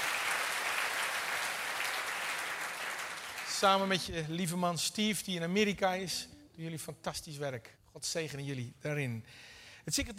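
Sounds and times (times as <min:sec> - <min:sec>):
audience applauding: 0:00.0 - 0:04.0
speech: 0:03.6 - 0:10.1.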